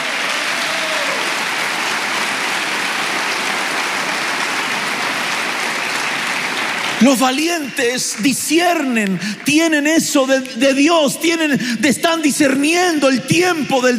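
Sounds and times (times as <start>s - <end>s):
audience applauding: 0.0s - 10.7s
speech: 7.0s - 13.9s.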